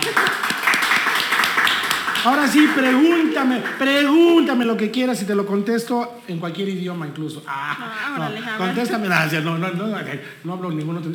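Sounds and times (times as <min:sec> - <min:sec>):
laughter: 0:00.0 - 0:01.5, 0:07.5 - 0:09.8
applause of many hands clapping: 0:00.0 - 0:04.5
speech: 0:02.2 - 0:11.1.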